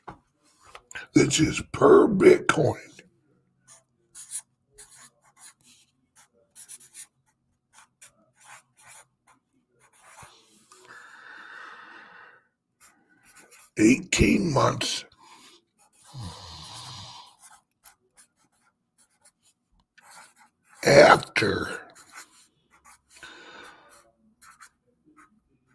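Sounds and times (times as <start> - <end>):
speech: 1.2 - 2.9, 13.8 - 15.1, 21.0 - 21.8
pen scratching as something is written by hand: 3.7 - 10.7, 12.8 - 25.7.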